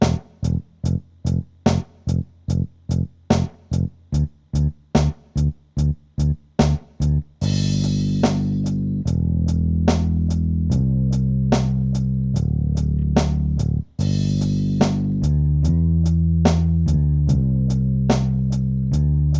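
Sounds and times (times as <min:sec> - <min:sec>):
bass: 0:00.0 - 0:19.3
drums: 0:00.0 - 0:19.3.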